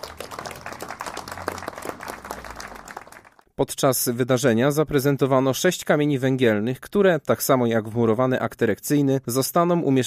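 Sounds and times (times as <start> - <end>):
audience applause: 0.0 - 3.4
speech: 3.6 - 10.0.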